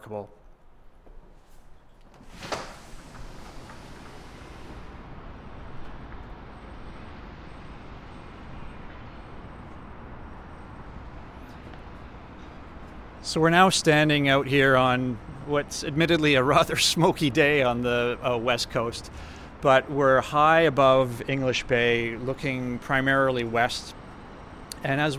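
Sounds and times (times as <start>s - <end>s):
speech: 0.0s - 0.4s, 13.3s - 24.0s, 24.8s - 25.1s
lift and slide door opening: 2.0s - 9.3s.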